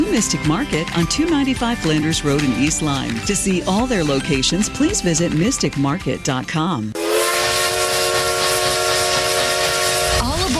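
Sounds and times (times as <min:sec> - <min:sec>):
speech: 0:00.2 - 0:07.1
steam train whistle: 0:07.0 - 0:10.5.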